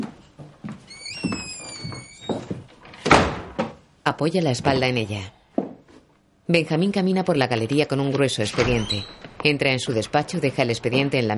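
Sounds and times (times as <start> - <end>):
door hinge creaking: 0.9 - 3.7, 8.5 - 9.4
door shutting with a thump: 3.0 - 3.8
speech: 4.1 - 5.4, 6.5 - 11.3.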